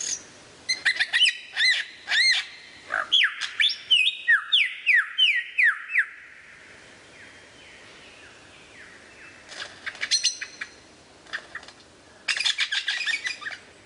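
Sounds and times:
lyrebird: 0.0s - 6.3s, 8.9s - 13.7s.

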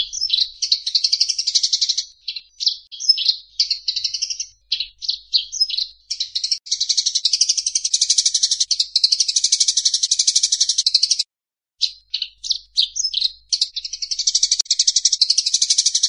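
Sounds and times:
Eurasian tree sparrow chirps: 0.0s - 16.0s.

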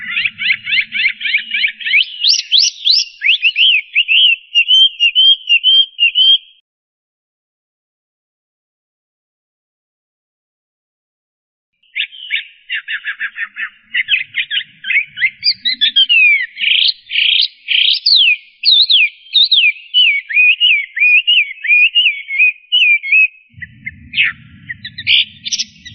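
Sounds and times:
Chinese hwamei singing loud rapid whistled phrases: 0.0s - 6.6s, 11.9s - 25.9s.

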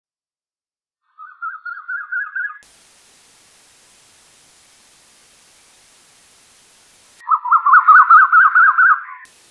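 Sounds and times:
Asian koel whistled call: 1.2s - 2.6s, 7.2s - 9.2s.

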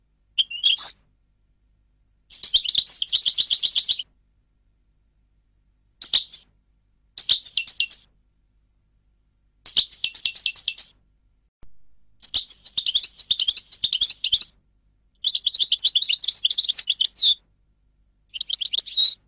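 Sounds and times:
European goldfinch song: 0.4s - 1.0s, 2.3s - 4.0s, 6.0s - 6.4s, 7.2s - 8.1s, 9.7s - 10.9s, 12.2s - 14.5s, 15.2s - 17.4s, 18.3s - 19.2s.

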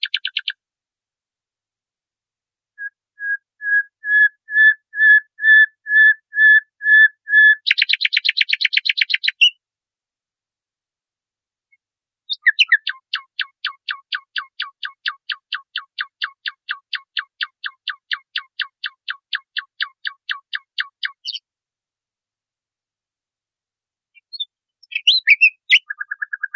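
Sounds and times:
nightingale singing: 0.0s - 0.6s, 2.8s - 9.6s, 11.7s - 21.4s, 24.2s - 26.5s.

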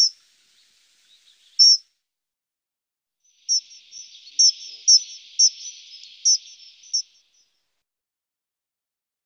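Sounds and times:
dunnock song: 0.0s - 1.9s, 3.3s - 7.7s.

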